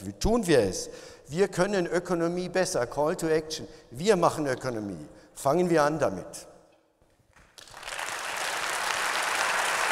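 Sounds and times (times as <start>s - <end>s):
speech: 0.0s - 6.5s
audience applause: 7.5s - 9.9s.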